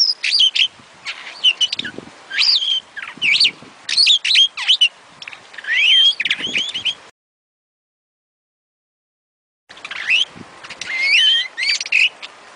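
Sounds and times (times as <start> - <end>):
starling singing clipped chirps, squeaky whistles and buzzy notes: 0.0 - 7.1, 9.7 - 12.5.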